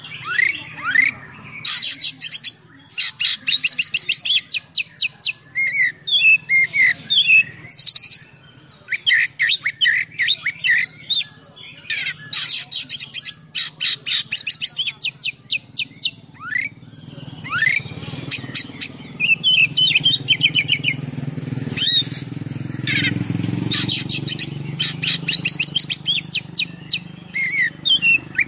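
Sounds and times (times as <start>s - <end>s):
Oriental magpie-robin song: 0.0s - 28.4s
low engine hum: 16.7s - 28.4s.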